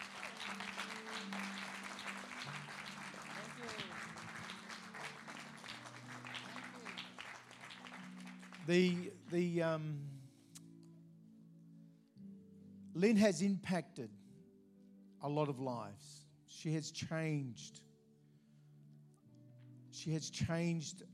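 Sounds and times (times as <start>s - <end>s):
audience applause: 0.0s - 9.2s
speech: 8.7s - 10.2s, 13.0s - 14.2s, 15.2s - 17.8s, 20.0s - 21.1s.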